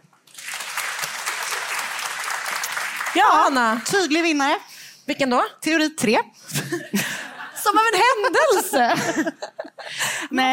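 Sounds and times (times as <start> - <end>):
audience clapping to vote: 0.0 - 4.2
speech: 3.1 - 9.6, 10.3 - 10.5
laughter: 6.5 - 10.1.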